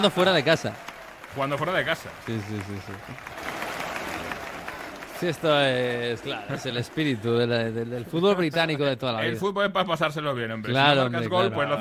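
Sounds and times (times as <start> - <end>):
speech: 0.0 - 3.4, 5.2 - 11.7
stadium crowd applauding: 0.0 - 8.6.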